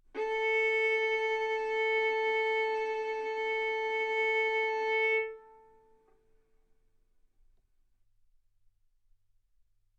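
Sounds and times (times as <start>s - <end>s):
violin bowed mezzo-forte on the A string, A4 and B4: 0.0s - 6.1s.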